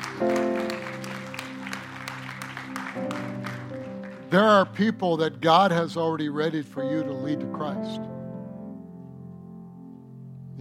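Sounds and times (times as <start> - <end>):
audience clapping: 0.0 - 5.0
speech: 4.3 - 8.0.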